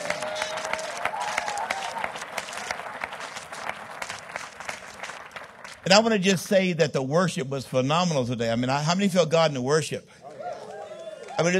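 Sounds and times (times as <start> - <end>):
audience applause: 0.0 - 6.1, 10.4 - 11.5
speech: 5.8 - 10.2, 11.4 - 11.5.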